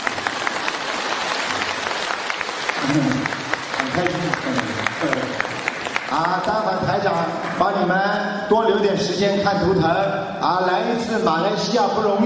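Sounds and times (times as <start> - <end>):
audience applause: 0.0 - 7.8
speech: 2.9 - 12.2.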